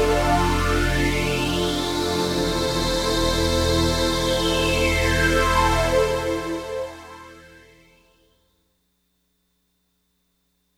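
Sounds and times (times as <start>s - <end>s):
LFO filter sweep effect from a Lexicon MPX 1: 0.0s - 7.8s.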